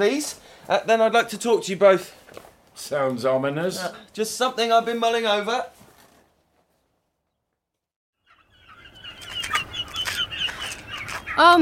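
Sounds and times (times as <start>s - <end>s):
speech: 0.0s - 5.8s, 11.4s - 11.6s
flock of turkeys gobbling and squawking: 8.2s - 11.6s.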